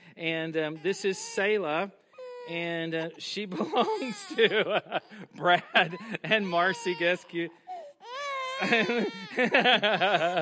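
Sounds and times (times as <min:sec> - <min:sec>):
speech: 0:00.2 - 0:07.7, 0:08.6 - 0:10.4
baby crying and sobbing: 0:02.2 - 0:04.7, 0:05.8 - 0:10.4
laughter: 0:03.4 - 0:06.9, 0:08.6 - 0:10.4.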